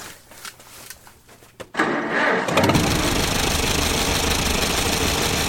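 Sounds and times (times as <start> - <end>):
restored old tractor engine starting and running: 1.8 - 5.4.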